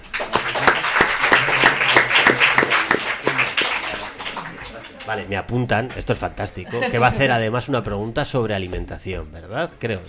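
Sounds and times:
audience applause: 0.0s - 5.2s
speech: 5.1s - 10.0s.

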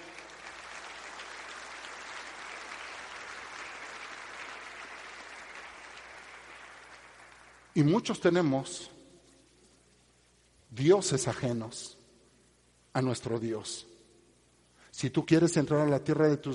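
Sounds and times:
audience applause: 0.0s - 7.7s
speech: 7.8s - 9.0s, 10.8s - 12.0s, 13.0s - 13.9s, 15.0s - 16.5s.

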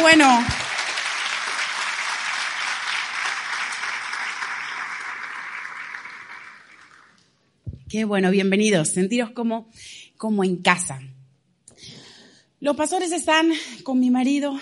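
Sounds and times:
audience applause: 0.0s - 7.2s
speech: 0.1s - 0.6s, 7.9s - 11.2s, 12.6s - 14.6s.

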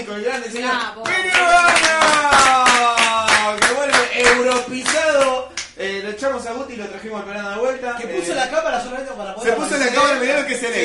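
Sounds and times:
speech: 0.0s - 2.0s, 6.1s - 10.8s
audience clapping: 0.6s - 5.8s.

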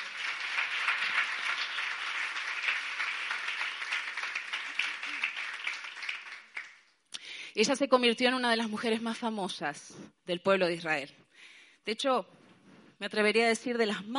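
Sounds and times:
audience applauding: 0.0s - 7.0s
speech: 7.6s - 11.2s, 11.8s - 12.4s, 13.0s - 14.1s.

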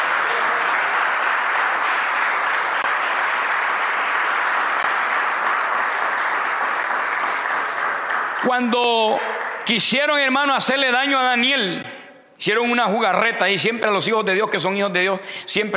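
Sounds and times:
audience applause: 0.0s - 9.9s
speech: 8.5s - 15.7s.

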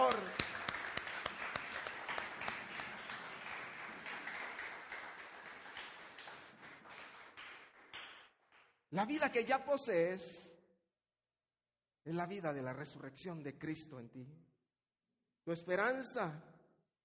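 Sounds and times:
audience applauding loudly: 0.0s - 8.7s
speech: 8.9s - 10.5s, 12.1s - 14.5s, 15.4s - 16.5s.

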